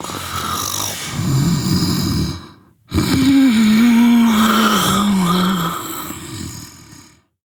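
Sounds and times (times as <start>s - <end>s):
mother snoring: 0.0s - 7.4s
mother vocalizing: 2.9s - 5.9s.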